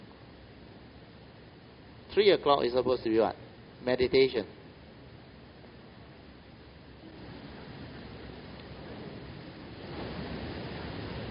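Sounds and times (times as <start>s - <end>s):
speech: 2.1s - 4.6s
rain falling: 6.9s - 11.2s.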